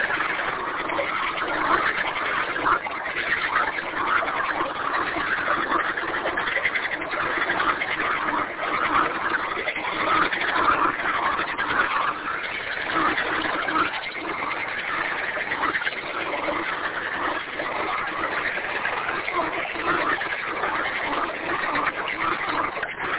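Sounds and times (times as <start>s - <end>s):
frogs croaking in chorus: 0.0s - 23.1s.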